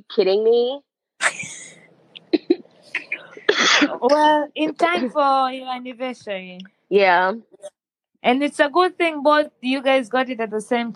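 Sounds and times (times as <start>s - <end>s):
speech: 0.0s - 1.5s, 3.8s - 10.9s
person coughing: 3.0s - 4.1s.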